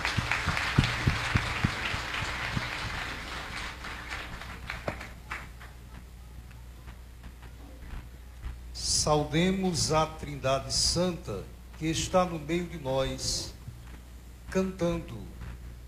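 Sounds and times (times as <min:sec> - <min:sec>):
crowd round of applause: 0:00.0 - 0:05.8
speech: 0:09.1 - 0:13.5, 0:14.5 - 0:15.4.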